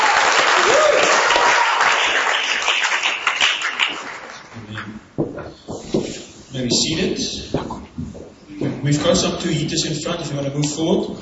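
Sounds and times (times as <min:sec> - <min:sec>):
audience applause: 0:00.0 - 0:04.8
speech: 0:06.6 - 0:07.8, 0:08.8 - 0:11.1.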